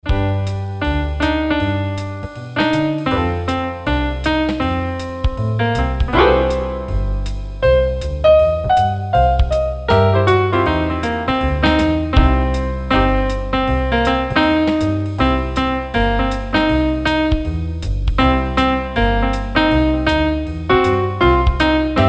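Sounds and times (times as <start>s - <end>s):
piano improvisation: 0.0s - 22.0s.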